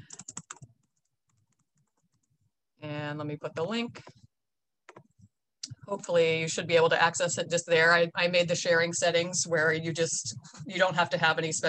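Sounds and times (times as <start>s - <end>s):
typing on a computer keyboard to post in an online workshop chat: 0.0s - 2.3s
speech: 3.1s - 4.2s, 5.9s - 11.6s.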